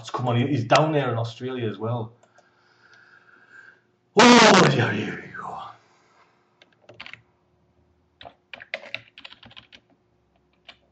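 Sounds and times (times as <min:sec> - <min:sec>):
speech: 0:00.2 - 0:02.2, 0:04.2 - 0:05.6
typing on a computer keyboard: 0:06.6 - 0:07.2, 0:08.2 - 0:10.9.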